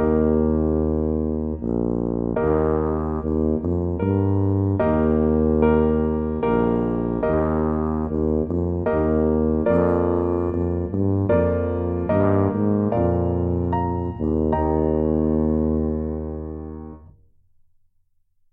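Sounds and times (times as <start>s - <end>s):
tuba melody: 0.0s - 17.2s.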